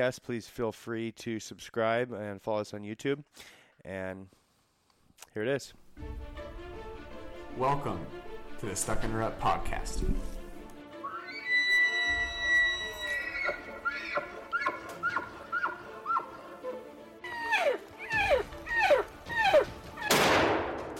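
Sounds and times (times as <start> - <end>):
speech: 0.0 - 4.4, 5.2 - 6.6, 7.6 - 10.4
high animal-like calls sliding downward in pitch: 11.0 - 20.2
rifle shot fired while hunting: 20.1 - 20.9.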